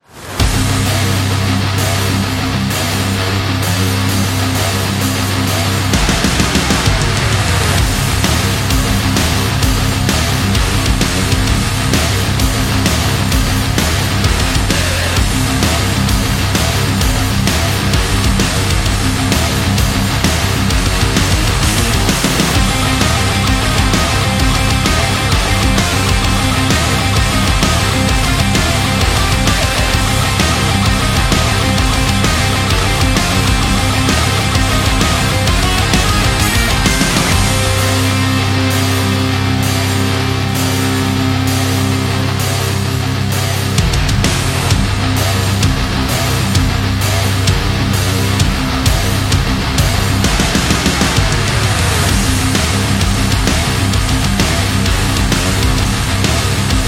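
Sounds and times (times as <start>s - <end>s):
metallic energy guitar: 0.0s - 56.8s.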